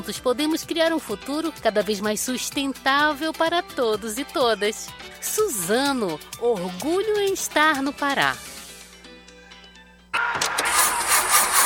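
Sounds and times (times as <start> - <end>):
speech: 0.0 - 8.5
car engine cranking on a dead battery: 10.2 - 11.6.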